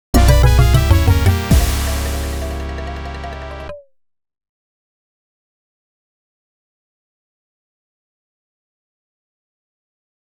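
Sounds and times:
fail sound: 0.2s - 3.9s.

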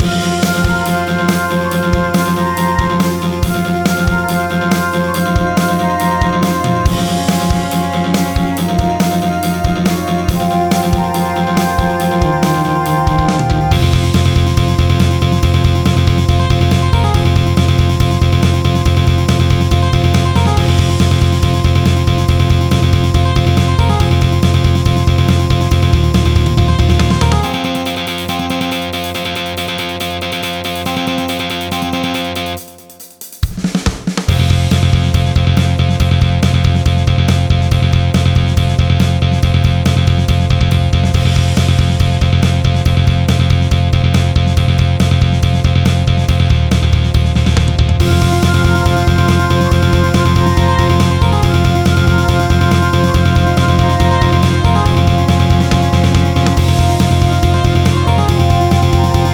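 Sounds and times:
boss battle music: 0.0s - 59.3s.

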